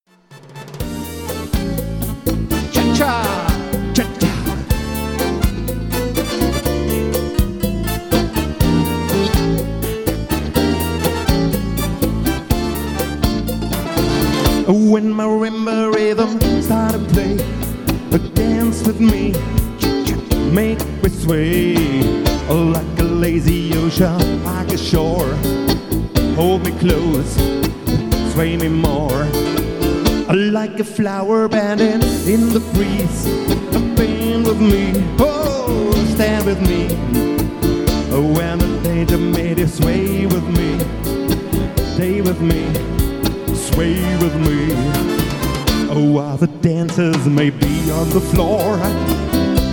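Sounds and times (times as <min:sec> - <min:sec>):
cha cha music: 0:00.0 - 0:49.7.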